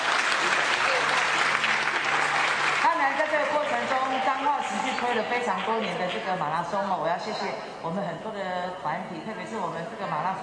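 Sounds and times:
audience applause: 0:00.0 - 0:05.9
speech: 0:05.2 - 0:10.4.

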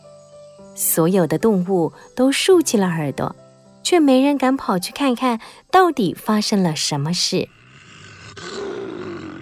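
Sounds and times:
speech: 0:00.8 - 0:07.6
lion roaring: 0:07.6 - 0:09.4.

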